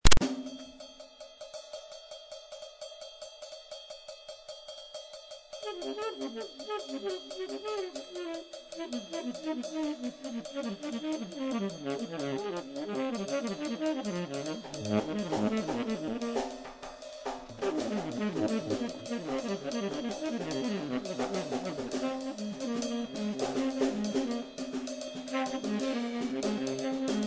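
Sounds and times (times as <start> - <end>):
musical trio: 5.6 - 27.2.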